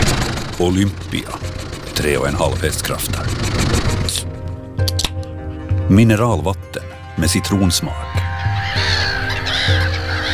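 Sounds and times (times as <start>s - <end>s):
flock of black-headed gulls calling: 0.0s - 4.4s, 7.9s - 10.3s
speech: 0.6s - 4.4s, 5.9s - 8.2s.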